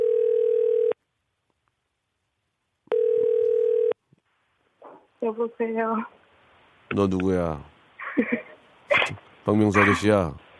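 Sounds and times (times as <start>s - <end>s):
telephone ringing tones on an outgoing call: 0.0s - 1.0s, 2.9s - 4.0s
speech: 5.2s - 6.2s, 6.9s - 8.5s, 9.1s - 10.4s.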